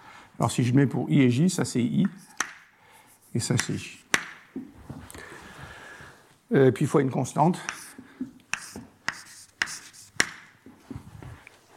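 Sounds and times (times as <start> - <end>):
speech: 0.4 - 2.4, 3.3 - 4.0, 6.5 - 7.8
chalk writing equations on a board: 2.0 - 4.5, 7.6 - 10.7.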